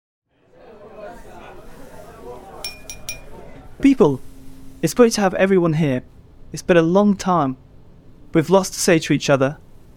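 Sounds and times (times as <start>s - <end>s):
crowd chattering: 0.4s - 3.8s
bright taps on a glass: 2.7s - 3.3s
speech: 3.8s - 7.6s, 8.3s - 9.9s.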